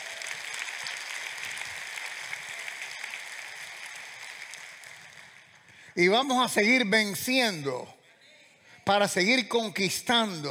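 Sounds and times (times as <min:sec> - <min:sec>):
audience applause: 0:00.0 - 0:06.3
speech: 0:06.0 - 0:08.0, 0:08.9 - 0:10.4.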